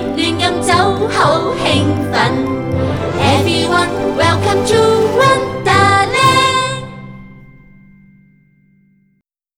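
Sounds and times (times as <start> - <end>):
theme song with vocals: 0.0 - 7.4.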